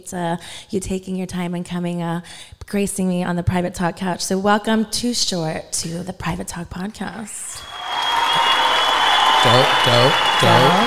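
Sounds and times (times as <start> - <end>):
speech: 0.0 - 7.7, 9.4 - 10.8
applause: 7.6 - 10.8.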